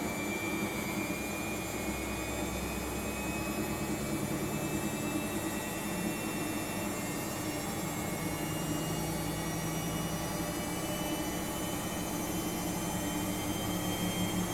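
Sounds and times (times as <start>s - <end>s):
washing machine running: 0.0s - 14.5s.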